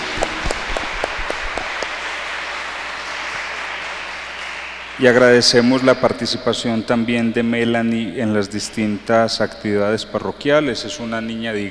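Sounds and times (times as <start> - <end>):
applause: 0.0 - 6.6
speech: 5.0 - 11.6.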